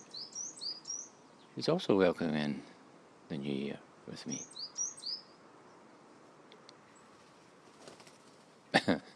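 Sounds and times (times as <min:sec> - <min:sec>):
high bird chirp: 0:00.0 - 0:01.6, 0:04.2 - 0:05.4
steady outdoor hiss: 0:00.0 - 0:09.1
speech: 0:01.6 - 0:02.7, 0:03.3 - 0:04.7
blackbird wingbeats whooshing past: 0:07.1 - 0:08.6.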